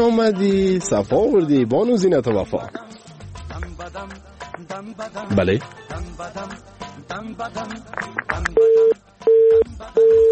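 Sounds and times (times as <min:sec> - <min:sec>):
speech: 0:00.0 - 0:03.0, 0:03.8 - 0:10.2
phone busy signal beeps after a dropped line: 0:08.6 - 0:10.2.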